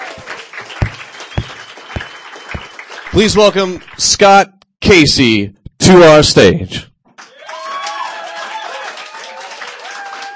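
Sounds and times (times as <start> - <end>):
audience applauding a performer at a reading event: 0.0 - 4.3, 7.2 - 10.3
speech: 3.2 - 6.9.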